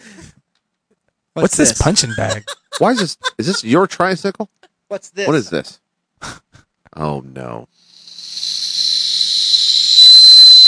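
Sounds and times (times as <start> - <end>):
laughter: 1.4 - 4.1
speech: 1.4 - 7.9
shrill whistle blast: 7.9 - 10.6.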